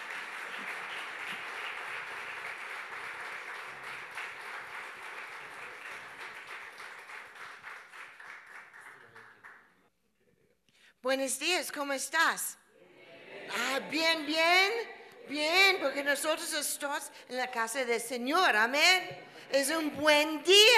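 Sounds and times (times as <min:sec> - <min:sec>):
crowd applause: 0:00.0 - 0:09.6
speech: 0:11.1 - 0:12.6, 0:13.9 - 0:20.7.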